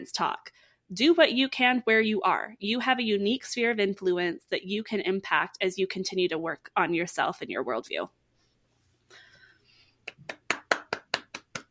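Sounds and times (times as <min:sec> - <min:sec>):
speech: 0:00.0 - 0:08.2
hands clapping: 0:10.0 - 0:11.6.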